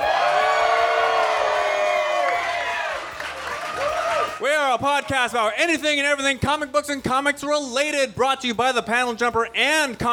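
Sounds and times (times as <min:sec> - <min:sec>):
live audience cheering and whooping at a comic book show recording: 0:00.0 - 0:04.7
speech: 0:04.7 - 0:10.1.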